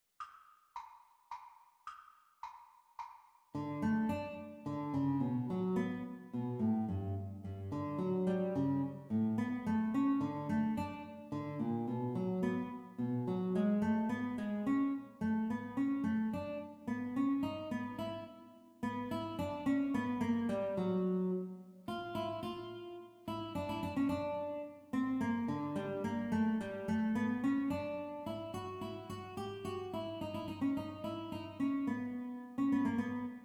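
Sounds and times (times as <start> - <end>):
guitar duet playalong: 3.6 - 33.4.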